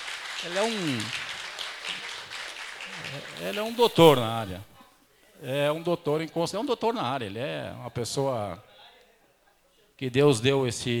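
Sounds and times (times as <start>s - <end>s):
crowd clapping: 0.0s - 4.4s
speech: 0.4s - 1.2s, 3.0s - 4.7s, 5.4s - 8.7s, 10.0s - 10.9s.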